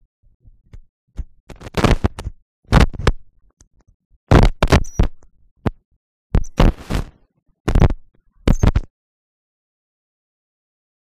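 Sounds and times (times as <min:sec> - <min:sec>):
small electrical contact crackling with arcs and sparks: 0:01.5 - 0:03.2, 0:04.3 - 0:05.2, 0:06.4 - 0:08.9.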